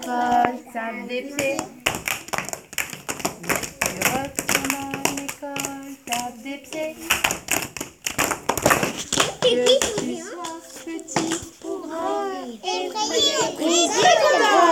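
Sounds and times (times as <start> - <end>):
speech: 0.1 - 1.9
children clapping hands: 1.4 - 11.7, 13.2 - 14.6.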